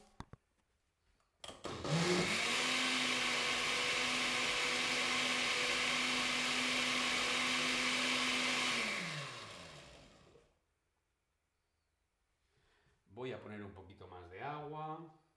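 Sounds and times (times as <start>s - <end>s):
electric blender blending tomato and vegetables: 1.6s - 10.5s
speech: 13.3s - 15.2s.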